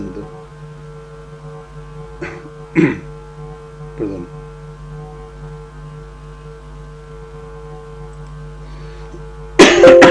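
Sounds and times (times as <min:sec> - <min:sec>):
coughing: 0:02.2 - 0:03.1
speech: 0:02.2 - 0:03.1.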